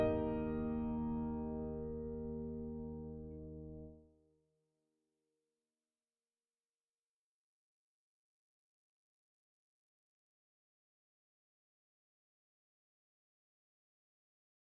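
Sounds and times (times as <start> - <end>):
instrumental song: 0.0 - 3.9.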